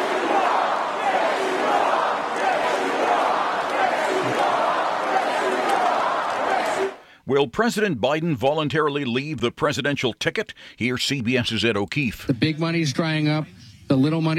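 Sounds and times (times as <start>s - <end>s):
rally crowd responding to Donald Trump's speech: 0.0s - 7.0s
speech: 7.3s - 14.3s.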